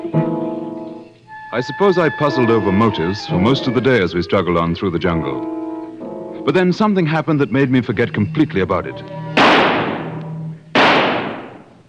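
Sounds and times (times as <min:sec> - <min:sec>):
speech: 0:01.5 - 0:05.6, 0:06.4 - 0:09.2
gunshot fired at an antelope in the jungle: 0:09.4 - 0:11.8.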